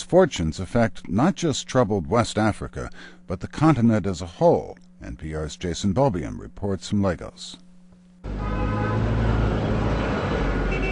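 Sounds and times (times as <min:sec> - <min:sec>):
speech: 0:00.1 - 0:07.6, 0:08.2 - 0:08.9
car horns: 0:08.2 - 0:10.9
city street traffic: 0:08.2 - 0:10.9.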